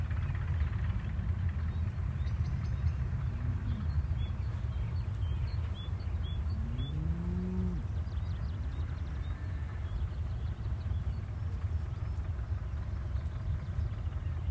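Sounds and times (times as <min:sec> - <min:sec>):
engine rumble: 0:00.0 - 0:14.4
cow mooing: 0:03.4 - 0:04.0, 0:06.4 - 0:07.9.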